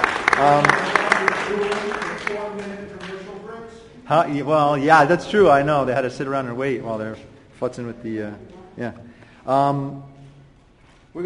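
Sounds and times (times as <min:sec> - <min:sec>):
audience applause for nominees and winners: 0:00.0 - 0:03.8
speech: 0:04.1 - 0:10.1.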